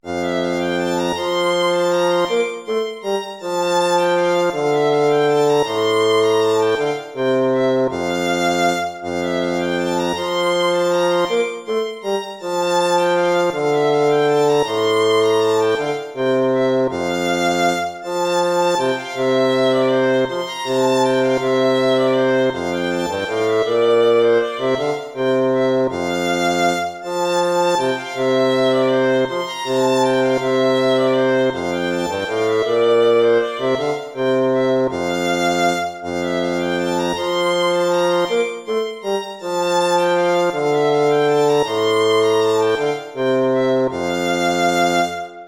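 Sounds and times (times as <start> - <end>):
lute playing: 0.0 - 45.4.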